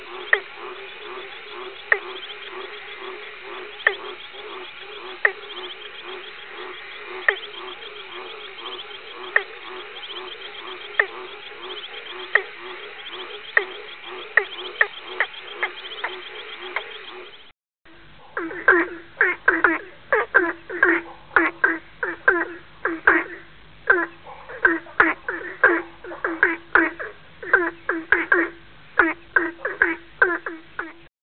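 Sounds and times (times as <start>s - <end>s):
high background hum: 0.0s - 24.3s
frog calls: 0.0s - 31.1s.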